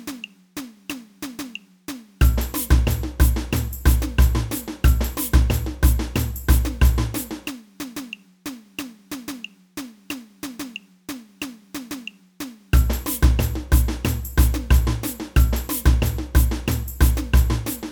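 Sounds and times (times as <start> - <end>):
tamborim playing samba in a samba band: 2.2 - 7.4, 12.8 - 17.8.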